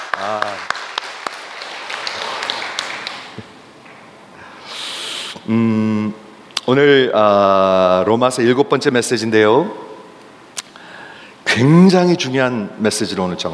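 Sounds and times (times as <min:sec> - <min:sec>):
audience applauding: 0:00.0 - 0:03.6
speech: 0:00.2 - 0:00.8, 0:05.5 - 0:09.9, 0:11.6 - 0:13.5.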